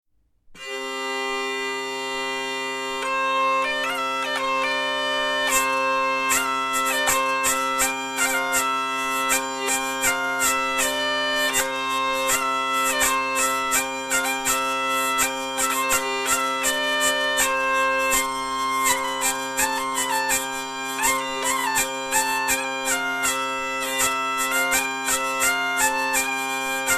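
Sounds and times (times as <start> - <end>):
hurdy-gurdy: 0.6 - 26.9.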